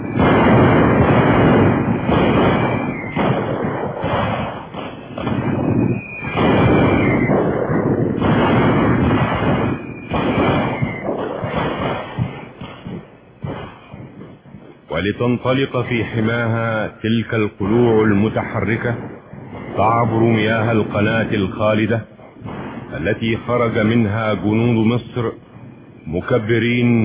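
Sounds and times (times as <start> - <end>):
heavy artillery fire and explosions: 0.0 - 27.0
speech: 15.2 - 19.2, 19.8 - 22.1, 23.0 - 27.0.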